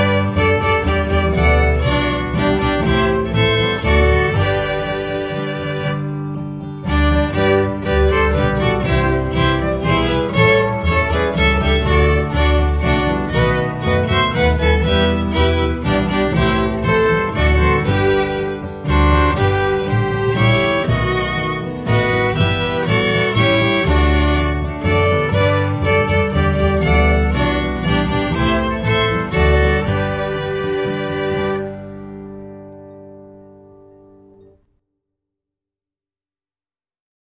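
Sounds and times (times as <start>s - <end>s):
Christmas bass line: 0.0s - 34.4s.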